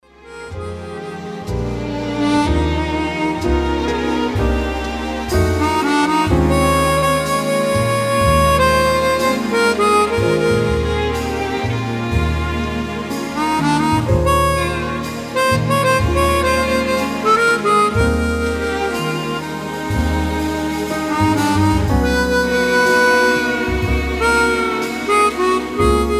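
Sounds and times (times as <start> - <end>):
christmas song: 0.0 - 26.1.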